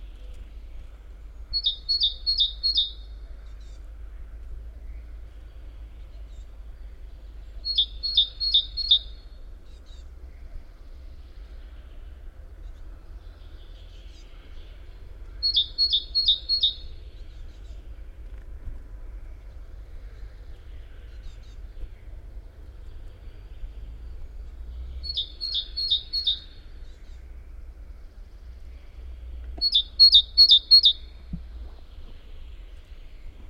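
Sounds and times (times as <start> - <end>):
low noise: 0.0 - 33.4
great tit calling two-note phrases: 1.6 - 3.0, 7.7 - 9.1, 15.4 - 16.9, 25.0 - 26.5, 29.6 - 31.1.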